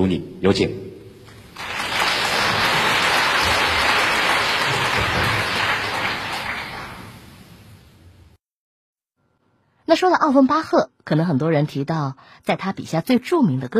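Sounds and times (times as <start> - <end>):
speech: 0.0 - 0.8, 9.9 - 13.7
audience applause: 1.4 - 7.4.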